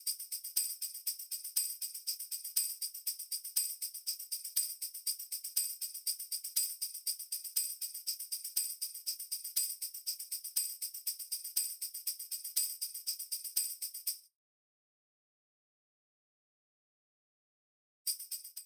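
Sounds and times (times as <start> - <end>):
tambourine: 0.0 - 14.3, 18.1 - 18.6.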